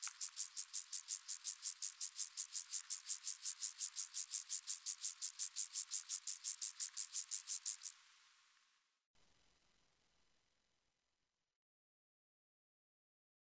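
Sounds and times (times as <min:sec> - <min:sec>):
steppe grasshopper: 0:00.0 - 0:08.7.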